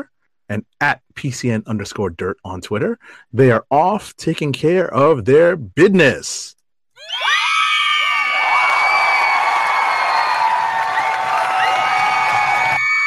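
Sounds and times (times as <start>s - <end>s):
speech: 0.0s - 7.4s
crowd cheering and screaming: 7.0s - 13.0s.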